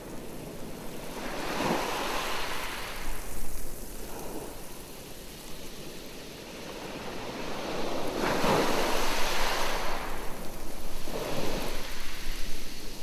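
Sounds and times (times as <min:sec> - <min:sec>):
wind on a beach: 0:00.0 - 0:13.0.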